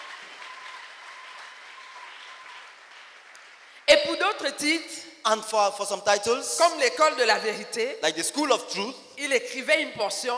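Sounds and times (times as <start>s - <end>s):
audience clapping: 0.0s - 4.1s
speech: 4.0s - 10.3s.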